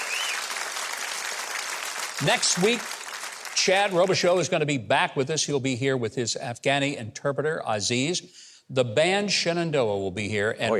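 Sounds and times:
high whistle: 0.0s - 0.5s
audience applause: 0.0s - 4.5s
speech: 2.2s - 3.0s, 3.6s - 10.7s.

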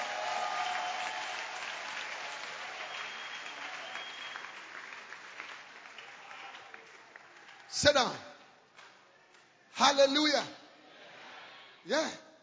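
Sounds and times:
audience clapping hands: 0.0s - 8.0s
speech: 7.7s - 8.3s, 9.8s - 10.6s, 11.9s - 12.2s.

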